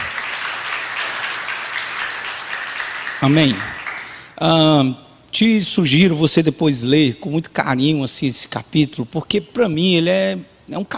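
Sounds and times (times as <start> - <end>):
audience applause: 0.0 - 4.3
speech: 3.2 - 3.7, 4.4 - 10.9.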